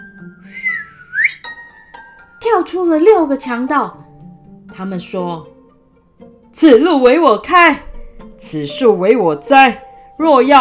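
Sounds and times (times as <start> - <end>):
a single whistle: 0.4 - 1.5
speech: 2.4 - 4.0, 4.8 - 5.5, 6.6 - 10.5.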